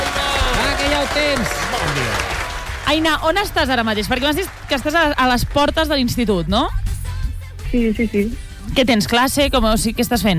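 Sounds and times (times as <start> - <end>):
applause: 0.0 - 6.1
speech: 1.0 - 2.3, 2.9 - 6.9, 7.7 - 10.3.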